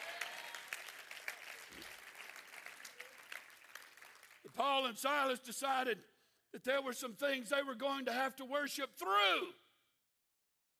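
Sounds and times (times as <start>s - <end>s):
audience clapping: 0.0s - 5.1s
speech: 4.5s - 9.6s.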